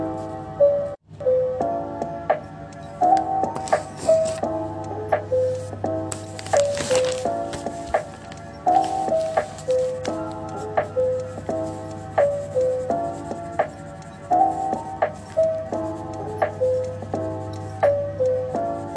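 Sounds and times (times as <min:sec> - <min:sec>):
looping plucked background music melody: 0:00.0 - 0:18.9
pen scribbling: 0:03.6 - 0:04.5, 0:05.6 - 0:16.4.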